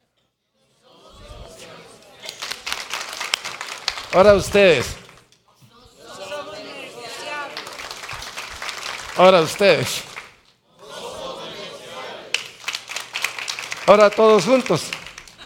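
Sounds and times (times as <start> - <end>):
audience applauding: 2.1 - 5.3, 6.3 - 10.4, 12.0 - 15.4
speech: 4.1 - 5.0, 9.2 - 10.1, 13.9 - 15.0.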